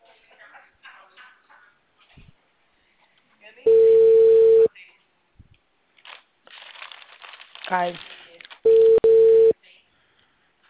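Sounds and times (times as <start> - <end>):
ringback tone of an outgoing WhatsApp call: 3.7 - 4.7, 8.7 - 9.5
speech: 7.7 - 8.1.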